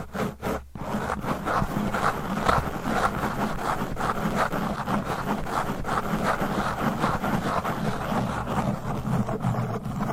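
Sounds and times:
fast aggressive scratching and rubbing on a microphone: 0.0s - 10.1s.

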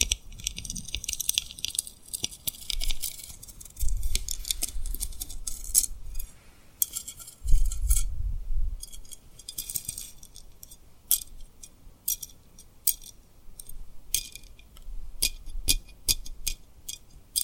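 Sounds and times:
tapping and rubbing on rhinestones: 0.0s - 8.0s, 8.8s - 17.4s.

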